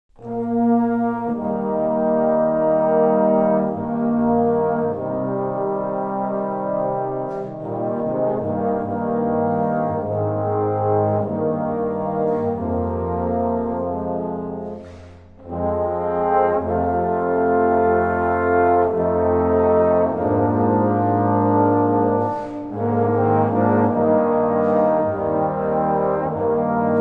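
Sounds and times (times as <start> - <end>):
brass ensemble: 0.1 - 27.0.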